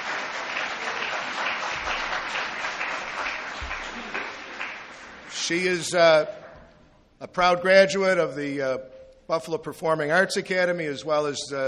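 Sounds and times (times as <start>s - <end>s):
crowd applauding: 0.0s - 5.4s
speech: 5.5s - 6.4s, 7.2s - 11.6s.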